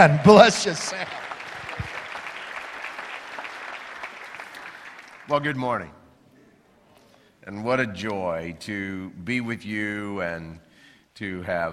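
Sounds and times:
speech: 0.0s - 1.2s, 5.3s - 6.0s, 7.4s - 11.7s
audience applause: 0.0s - 5.5s.

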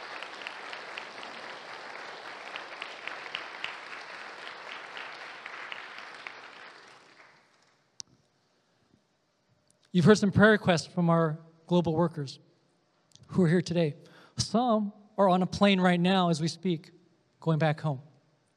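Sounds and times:
audience clapping: 0.0s - 7.8s
speech: 10.0s - 12.5s, 13.3s - 18.1s.

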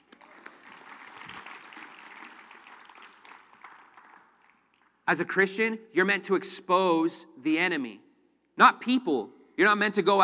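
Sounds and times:
audience clapping: 0.0s - 5.0s
speech: 5.1s - 8.0s, 8.6s - 10.2s.

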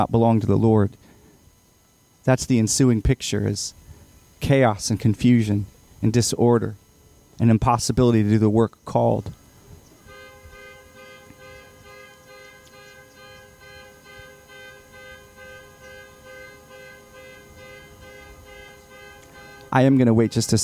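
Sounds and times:
speech: 0.0s - 1.1s, 2.2s - 3.8s, 4.4s - 6.8s, 7.4s - 9.4s, 19.7s - 20.6s
car horn honking outside: 10.0s - 20.6s.

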